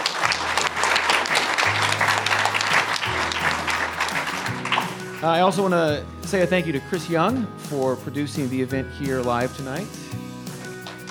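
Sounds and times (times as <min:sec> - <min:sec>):
applause from a sizable audience: 0:00.0 - 0:05.6, 0:10.8 - 0:11.0
speech: 0:05.2 - 0:10.0.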